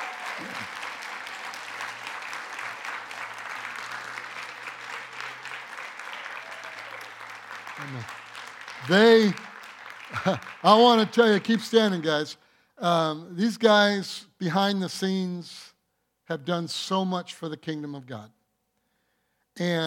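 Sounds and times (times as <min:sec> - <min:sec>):
audience applause: 0:00.0 - 0:12.0
speech: 0:07.9 - 0:08.2, 0:08.8 - 0:09.4, 0:10.2 - 0:15.7, 0:16.3 - 0:18.4, 0:19.6 - 0:19.8.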